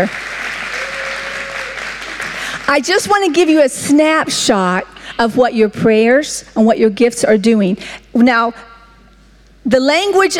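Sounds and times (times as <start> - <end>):
speech: 0.0 - 0.4, 2.7 - 8.7, 9.6 - 10.3
audience applause: 0.0 - 3.4.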